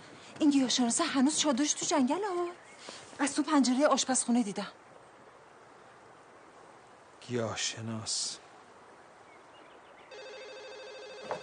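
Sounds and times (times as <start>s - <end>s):
speech: 0.4s - 2.6s, 3.2s - 4.8s, 7.3s - 8.4s
telephone ringing with a warbling electronic tone: 10.1s - 11.4s.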